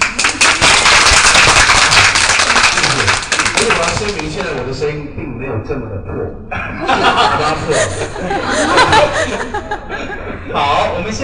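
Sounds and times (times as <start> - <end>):
crowd applause: 0.0 - 4.7
speech: 5.6 - 8.4
laughter: 6.5 - 11.2.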